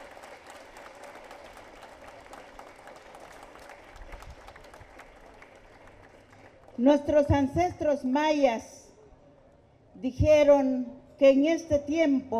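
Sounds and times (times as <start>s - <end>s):
audience applause: 0.0s - 6.8s
speech: 6.8s - 8.8s, 10.0s - 12.3s.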